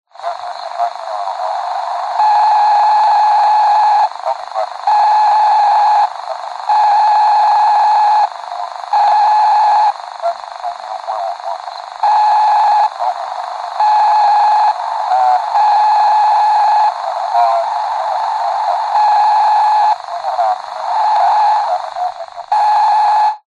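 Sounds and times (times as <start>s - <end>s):
walkie talkie radio interference: 0.1s - 23.4s
faint male voice over walkie talkie: 0.2s - 1.8s, 10.2s - 11.7s, 16.9s - 18.9s, 20.0s - 22.5s.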